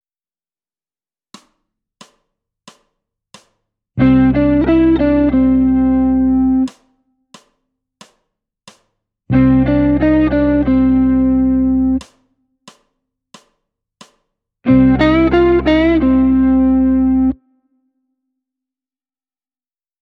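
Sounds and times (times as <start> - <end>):
blues music: 4.0 - 6.8, 9.3 - 12.1, 14.7 - 17.4.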